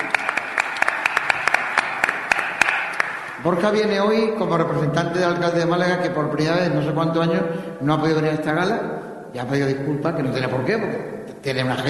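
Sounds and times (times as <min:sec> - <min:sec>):
audience applause: 0:00.0 - 0:03.4
speech: 0:03.4 - 0:11.8.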